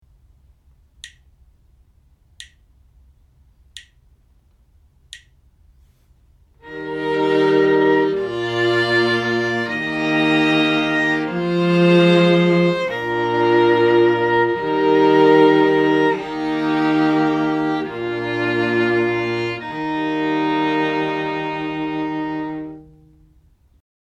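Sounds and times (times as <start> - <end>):
string quartet playing: 6.6 - 23.3.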